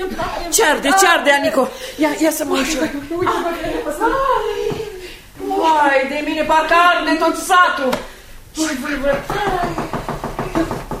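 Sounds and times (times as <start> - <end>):
speech: 0.0 - 4.5, 5.6 - 9.8
knocking on a window: 9.0 - 10.9.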